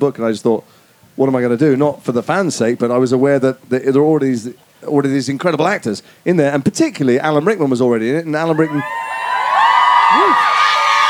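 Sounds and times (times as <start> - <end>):
speech: 0.0 - 9.0
audience clapping: 8.6 - 11.0.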